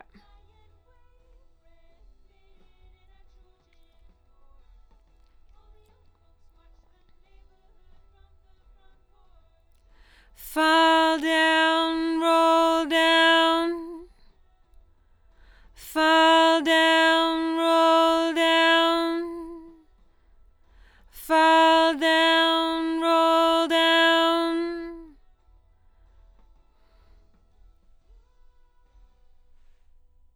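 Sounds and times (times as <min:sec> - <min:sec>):
doubled lead vocal: 0:10.4 - 0:14.1, 0:15.8 - 0:19.8, 0:21.2 - 0:25.1.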